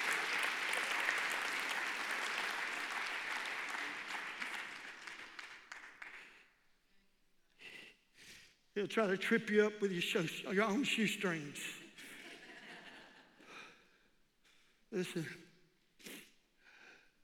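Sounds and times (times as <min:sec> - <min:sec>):
audience clapping hands: 0:00.0 - 0:06.4
speech: 0:08.8 - 0:11.8, 0:15.0 - 0:15.5.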